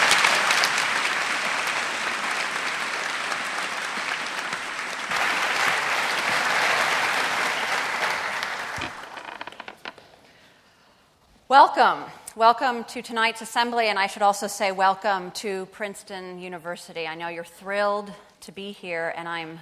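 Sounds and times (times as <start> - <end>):
audience applauding to welcome a professor at a university freshman assembly: 0.0 - 9.9
speech: 11.5 - 19.5.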